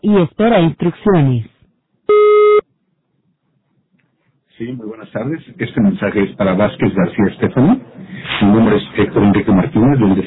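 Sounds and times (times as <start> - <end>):
speech: 0.0 - 1.5, 4.6 - 10.2
voicemail beep tone: 2.1 - 2.6.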